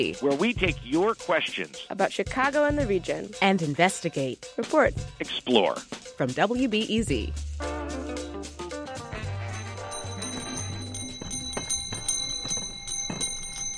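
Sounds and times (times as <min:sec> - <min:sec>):
speech: 0:00.0 - 0:07.7
ice cream cart bells ringing on Chicago sidewalks: 0:09.4 - 0:13.7.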